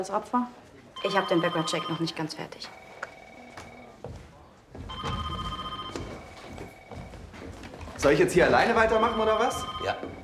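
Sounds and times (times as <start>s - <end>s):
speech: 0.0s - 2.9s, 8.0s - 10.2s
telephone ringing: 1.0s - 4.0s, 4.9s - 7.3s, 8.6s - 10.2s.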